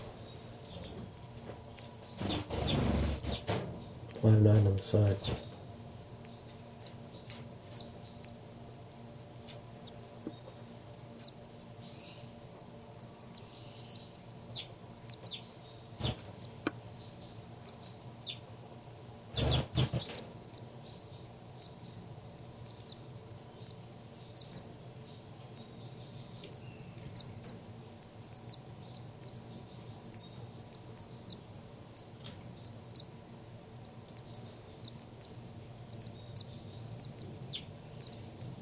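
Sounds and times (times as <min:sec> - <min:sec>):
baby birds calling: 0:00.0 - 0:12.4, 0:13.2 - 0:18.6, 0:19.2 - 0:38.5
speech: 0:04.2 - 0:05.5.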